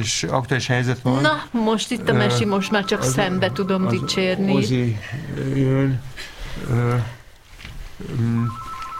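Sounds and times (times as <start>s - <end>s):
speech: 0.0s - 7.2s, 8.0s - 8.6s
high thin tone: 2.1s - 5.0s
telephone ringing with an incoming call: 2.1s - 5.0s, 8.4s - 8.9s.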